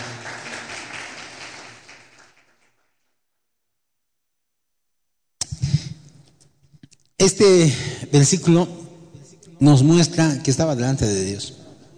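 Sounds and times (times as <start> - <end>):
audience applause: 0.0 - 2.9
speech: 7.2 - 8.8, 9.6 - 11.6.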